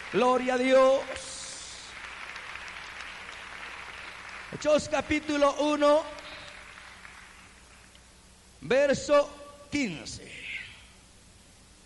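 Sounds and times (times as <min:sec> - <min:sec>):
congregation applauding during a church service: 0:00.0 - 0:07.9
speech: 0:00.1 - 0:01.3, 0:04.5 - 0:06.2, 0:08.6 - 0:10.4.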